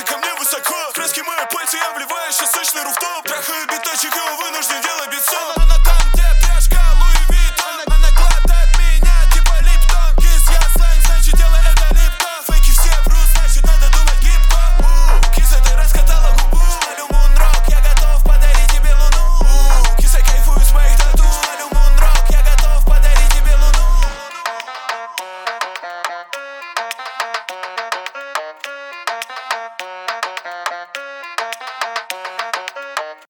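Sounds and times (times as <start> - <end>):
29-33 Hz low bass tone: 5.6 - 24.2.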